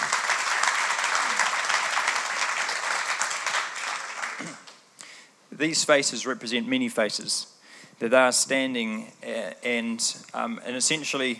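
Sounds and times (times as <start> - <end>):
audience applause: 0.0 - 4.8
speech: 5.6 - 11.3.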